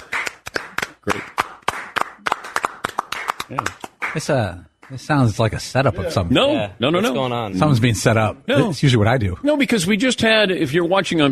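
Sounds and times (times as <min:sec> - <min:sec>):
round of applause for cameraman: 0:00.0 - 0:05.0
speech: 0:03.5 - 0:11.3.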